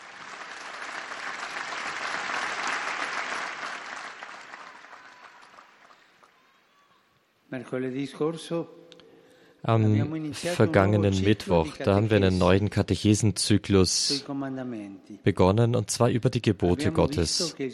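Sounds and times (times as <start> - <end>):
audience clapping in a hall: 0.0 - 7.0
speech: 7.5 - 8.8, 9.6 - 17.7.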